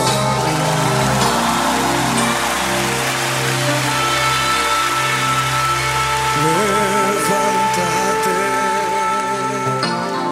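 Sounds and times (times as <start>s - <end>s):
applause: 0.0s - 10.2s.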